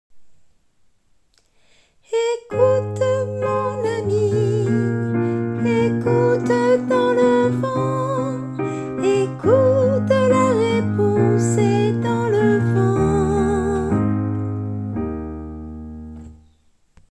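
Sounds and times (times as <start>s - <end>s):
tenor singing: 2.1s - 14.4s.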